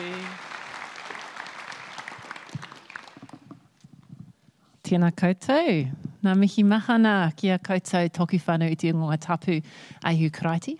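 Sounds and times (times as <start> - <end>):
audience applause welcoming a speaker at a church service: 0.0 - 3.6
speech: 4.9 - 10.7.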